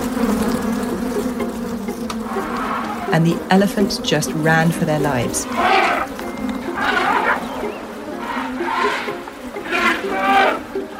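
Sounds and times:
disturbed bees swarming from knocked hive: 0.0s - 10.9s
speech: 3.1s - 5.9s.

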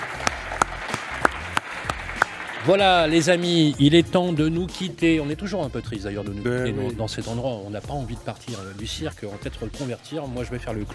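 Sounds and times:
audience applause: 0.0s - 3.8s
speech: 2.6s - 10.9s.

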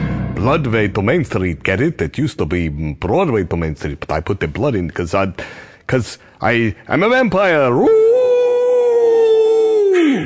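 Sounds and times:
speech: 0.4s - 8.1s
man imitating a howl: 7.8s - 10.2s.

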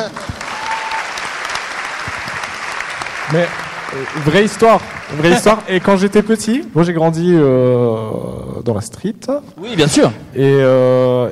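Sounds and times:
audience applause: 0.0s - 6.7s
speech: 3.3s - 11.3s.

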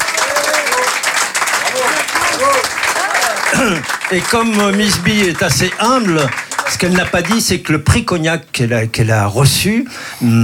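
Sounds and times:
audience applauding a music group: 0.0s - 8.0s
speech: 2.4s - 10.4s.

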